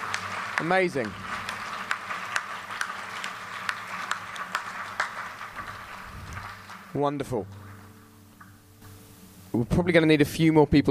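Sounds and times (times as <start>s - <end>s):
round of applause: 0.0s - 7.9s
speech: 0.6s - 1.3s, 7.0s - 7.6s, 9.5s - 10.8s.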